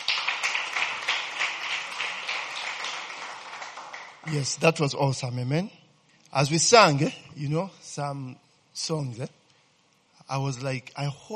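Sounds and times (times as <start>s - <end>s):
audience clapping: 0.0s - 4.7s
speech: 4.2s - 9.4s, 10.3s - 11.3s.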